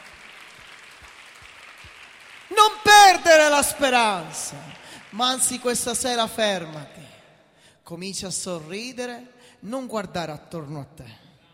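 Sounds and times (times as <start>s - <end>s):
faint congregation applause during a church service: 0.0s - 7.1s
speech: 2.6s - 7.1s, 7.9s - 11.3s.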